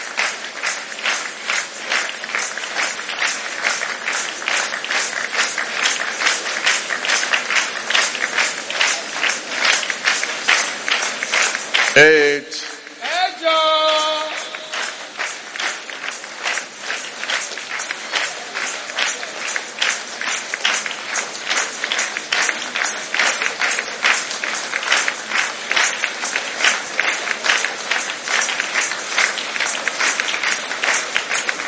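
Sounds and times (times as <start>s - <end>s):
crowd clapping: 0.0s - 31.6s.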